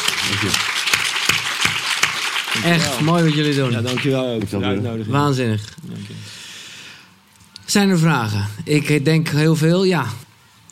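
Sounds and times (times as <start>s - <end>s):
audience applause: 0.0s - 4.4s
speech: 0.3s - 0.8s, 2.5s - 6.4s, 7.7s - 10.2s.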